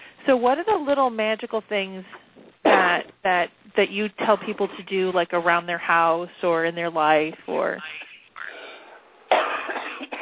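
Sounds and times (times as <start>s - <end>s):
speech: 0.3s - 2.2s, 2.8s - 8.0s
person with a cold coughing: 2.7s - 3.0s, 9.3s - 10.2s.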